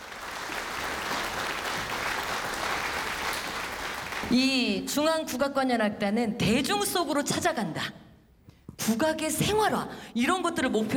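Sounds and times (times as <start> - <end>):
audience applause welcoming a guest: 0.0 - 4.4
speech: 4.3 - 8.0, 8.9 - 10.9.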